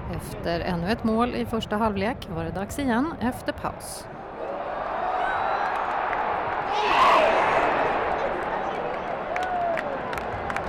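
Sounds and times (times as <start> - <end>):
speech: 0.2 - 4.1
stadium crowd cheering and applauding: 4.4 - 10.6.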